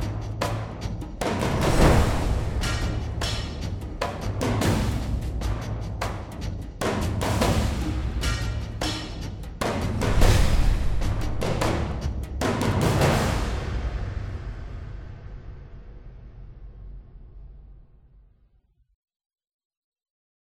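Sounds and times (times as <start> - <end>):
combat percussion: 0.0 - 15.9.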